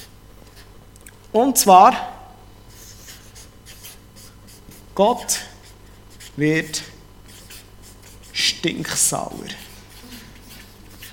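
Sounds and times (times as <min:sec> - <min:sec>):
speech: 0:01.3 - 0:02.1, 0:05.0 - 0:05.5, 0:06.4 - 0:06.9, 0:08.6 - 0:09.6
pen scratching in handwriting: 0:02.8 - 0:04.8, 0:05.6 - 0:08.6, 0:09.3 - 0:11.1.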